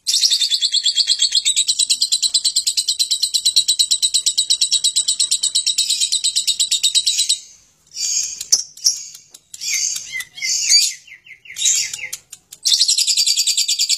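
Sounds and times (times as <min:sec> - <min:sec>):
lovebird long chattering trill: 0:00.1 - 0:13.9.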